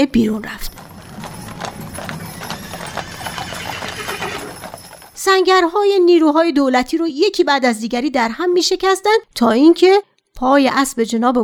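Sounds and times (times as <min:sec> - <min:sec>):
speech: 0:00.0 - 0:00.7, 0:05.2 - 0:11.4
horses galloping: 0:00.0 - 0:05.7
horses snorting and whinnying: 0:00.7 - 0:05.2.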